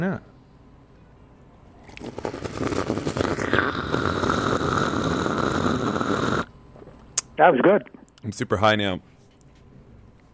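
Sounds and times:
speech: 0.0 - 0.3, 7.4 - 9.1
imitation of a water bong bubbling: 1.8 - 6.5.

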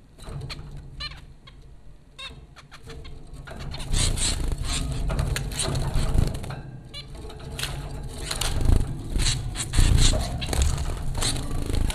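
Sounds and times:
low rumbling background noise: 0.0 - 11.9
zebra finch calls: 0.4 - 1.6, 2.2 - 6.3, 8.2 - 11.9.

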